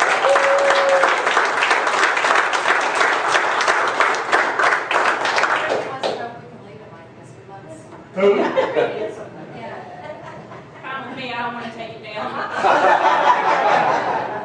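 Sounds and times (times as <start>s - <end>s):
audience applause: 0.0s - 6.1s
laughter: 8.2s - 11.1s, 12.2s - 14.4s.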